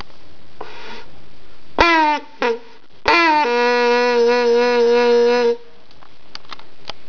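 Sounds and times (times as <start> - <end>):
horn: 1.8 - 5.7.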